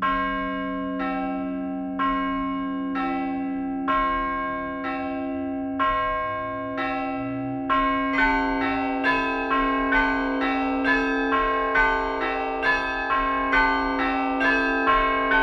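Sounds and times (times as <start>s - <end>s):
church bells ringing in a traditional peal: 0.0s - 15.4s.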